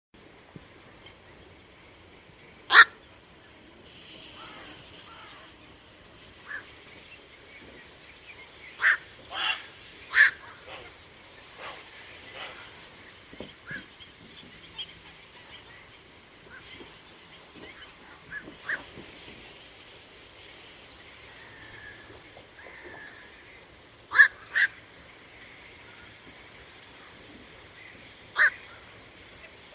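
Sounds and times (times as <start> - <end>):
steady hiss: 0.2 - 29.7
bird giving harsh cawing calls: 2.7 - 3.0, 4.3 - 5.6, 6.4 - 6.7, 8.8 - 11.0, 21.3 - 24.8, 27.8 - 29.0.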